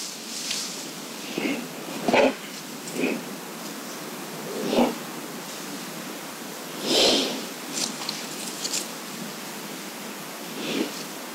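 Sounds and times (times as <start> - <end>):
hiss: 0.0 - 11.3
bear sniffing around the microphone: 1.1 - 3.4, 4.3 - 5.1, 6.8 - 8.9, 10.4 - 11.0.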